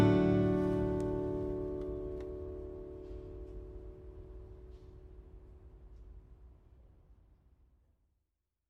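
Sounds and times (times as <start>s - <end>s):
Lowden S35c guitar: 0.0s - 4.0s.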